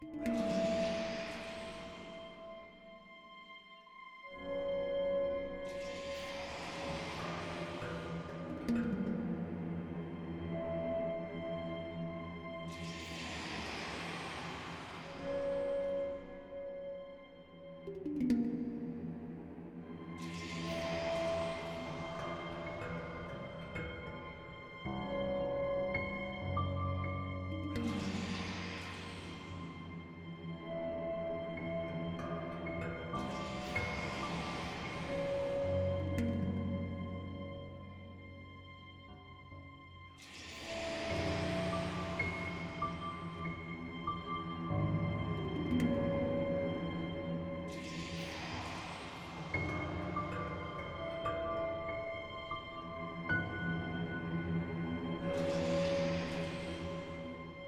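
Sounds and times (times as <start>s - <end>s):
tense cinematic music: 0.0s - 57.6s.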